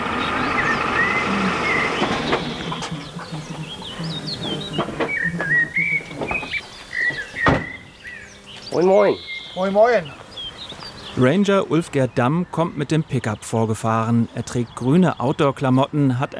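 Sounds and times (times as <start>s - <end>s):
geese honking in flight: 0.0s - 10.2s
low hum: 0.0s - 15.0s
speech: 8.8s - 10.2s, 11.2s - 16.3s.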